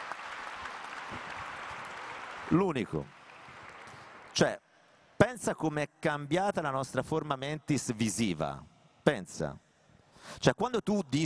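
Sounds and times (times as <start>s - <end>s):
audience applause: 0.0s - 4.4s
speech: 2.5s - 3.2s, 4.4s - 4.6s, 5.3s - 9.6s, 10.2s - 11.2s.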